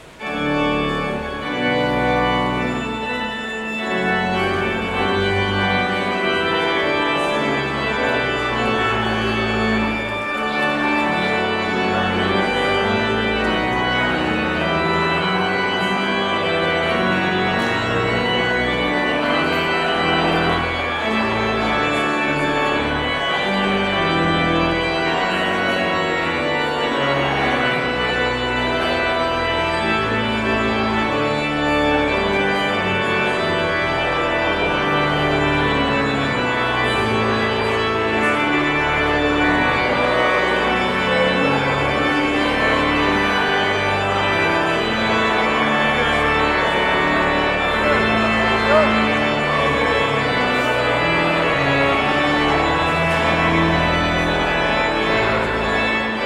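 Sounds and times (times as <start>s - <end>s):
postlude: 0.0s - 56.2s.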